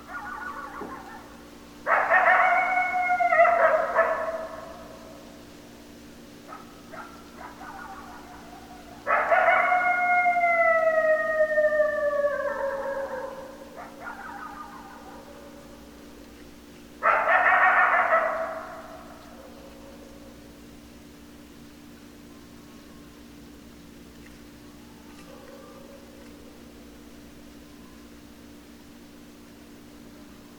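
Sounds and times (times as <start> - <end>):
coyote howls and yelps: 0.0 - 5.2, 6.5 - 15.9, 17.0 - 20.4
steady hum: 0.0 - 30.5.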